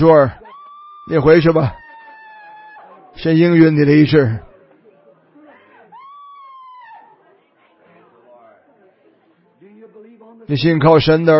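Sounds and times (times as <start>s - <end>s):
speech: 0.0s - 0.4s, 1.1s - 1.8s, 3.2s - 4.5s, 10.5s - 11.3s
women cheering: 0.0s - 3.9s, 5.8s - 7.4s
laughter: 0.1s - 7.4s.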